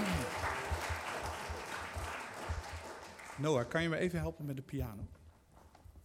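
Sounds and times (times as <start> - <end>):
audience applause: 0.0 - 4.0
speech: 3.4 - 5.2.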